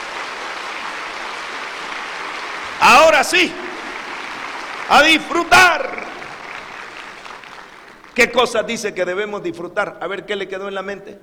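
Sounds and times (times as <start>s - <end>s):
audience applauding pastors at a church gathering: 0.0s - 8.9s
speech: 2.8s - 3.6s, 4.9s - 6.0s, 8.2s - 11.2s.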